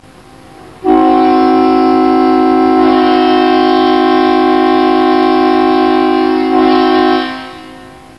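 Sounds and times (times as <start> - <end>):
horn: 0.8 - 8.1.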